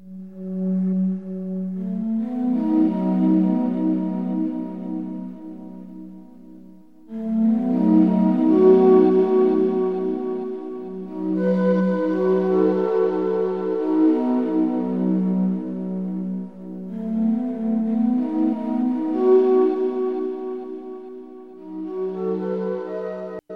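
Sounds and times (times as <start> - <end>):
ambient video game music with soft synth pads: 0.0 - 23.5.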